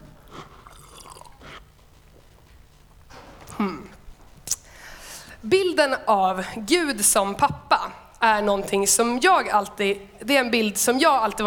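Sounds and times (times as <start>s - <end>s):
person drinking water: 0.0s - 2.2s, 8.2s - 9.2s
speech: 5.4s - 11.4s.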